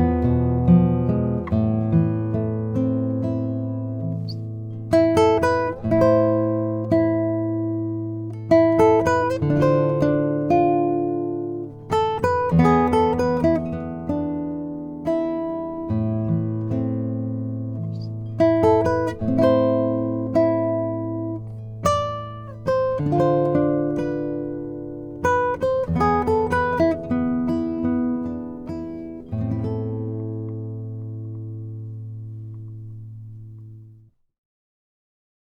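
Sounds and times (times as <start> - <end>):
Lowden S25J Indian rosewood acoustic guitar: 0.0 - 34.1.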